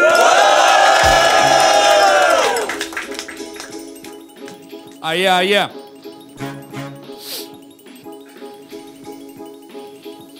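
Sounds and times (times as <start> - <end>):
people shouting and whooping: 0.0 - 2.9
loud crowd cheering and roaring: 0.0 - 3.3
scattered claps: 0.0 - 5.0
speech: 5.1 - 5.8.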